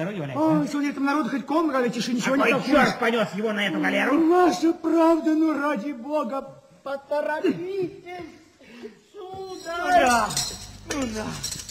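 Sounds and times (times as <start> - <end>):
speech: 0.0 - 9.0, 9.6 - 11.6
keys jingling as a wardrobe key is handed over: 9.4 - 11.6.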